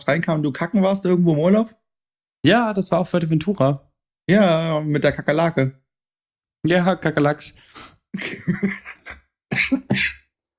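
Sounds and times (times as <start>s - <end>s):
speech: 0.1s - 1.8s, 2.4s - 5.8s, 6.6s - 9.1s
smoker's cough: 9.5s - 10.3s.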